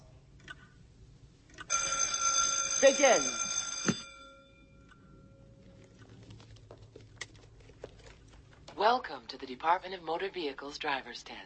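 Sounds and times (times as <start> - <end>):
electric bell ringing: 1.7 - 5.6
speech: 2.8 - 3.4, 9.0 - 11.4.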